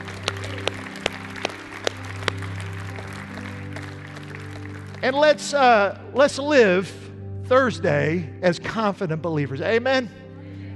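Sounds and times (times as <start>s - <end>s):
audience applause: 0.0s - 5.5s
speech: 5.0s - 10.2s.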